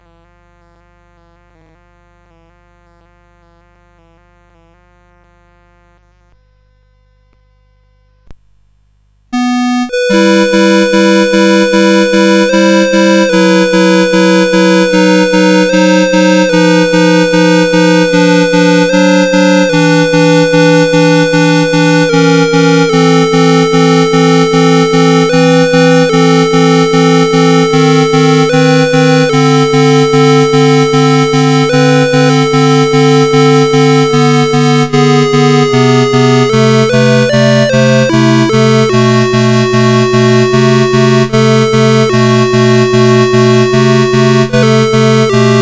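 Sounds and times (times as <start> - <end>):
prelude: 9.4 - 45.6.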